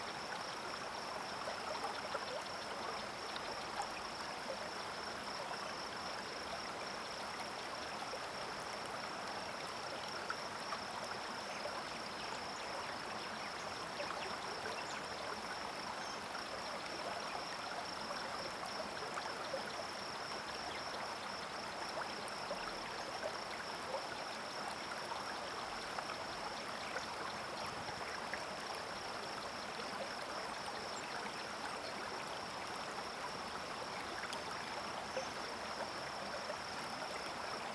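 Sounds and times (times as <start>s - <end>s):
calm river and streams flowing: 0.0s - 37.7s.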